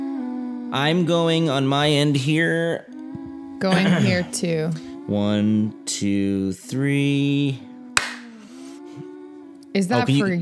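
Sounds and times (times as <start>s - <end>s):
speech: 0.7s - 3.0s, 3.6s - 7.7s, 9.8s - 10.4s
two people clapping together: 8.0s - 8.4s.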